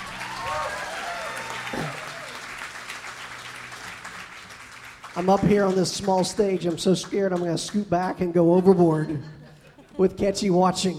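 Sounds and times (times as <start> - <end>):
people whooping and cheering: 0.0 - 3.0
audience applause: 0.0 - 7.5
speech: 5.2 - 9.4, 10.0 - 10.9.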